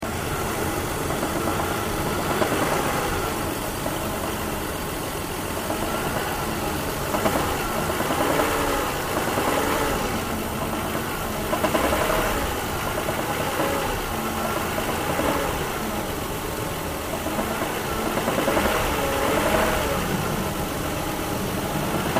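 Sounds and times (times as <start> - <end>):
engine running with hood up: 0.0 - 22.1.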